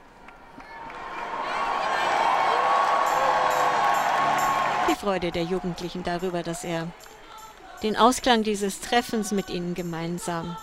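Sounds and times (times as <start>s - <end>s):
enthusiastic applause and cheering: 0.2s - 7.8s
speech: 4.9s - 7.2s, 7.8s - 10.6s.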